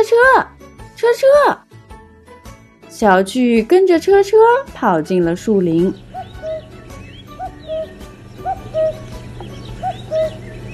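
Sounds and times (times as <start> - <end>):
speech: 0.0 - 1.7, 2.9 - 6.0
cuckoo calling: 5.0 - 10.7.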